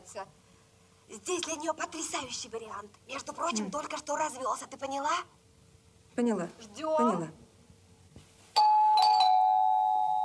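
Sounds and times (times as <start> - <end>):
speech: 0.2 - 0.5, 1.1 - 5.4, 6.2 - 7.4
doorbell ringing with a bright electronic chime: 8.6 - 10.2.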